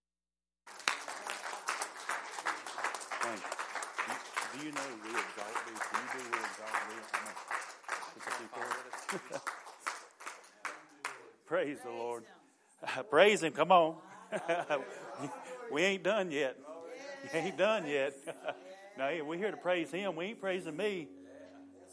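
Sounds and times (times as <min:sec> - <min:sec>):
audience applause, hand clapping: 0:00.6 - 0:11.3
speech: 0:03.3 - 0:03.6, 0:04.6 - 0:07.6, 0:08.2 - 0:09.6, 0:11.5 - 0:21.2
laughter: 0:08.2 - 0:09.8, 0:14.0 - 0:15.8, 0:17.2 - 0:18.8.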